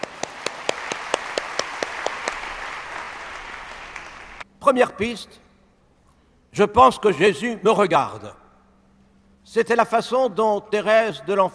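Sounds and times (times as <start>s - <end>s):
audience applauding: 0.0s - 4.4s
speech: 4.6s - 5.4s, 6.5s - 8.4s, 9.5s - 11.5s.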